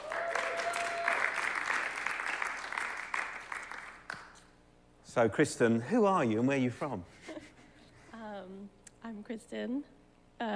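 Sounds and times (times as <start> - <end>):
audience applause: 0.0 - 4.4
speech: 5.2 - 7.2, 9.4 - 10.5.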